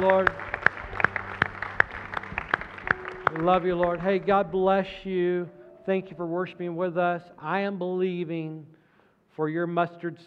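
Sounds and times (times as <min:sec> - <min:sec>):
speech: 0:00.0 - 0:00.5, 0:03.4 - 0:08.7, 0:09.4 - 0:10.2
audience applause: 0:00.0 - 0:04.8.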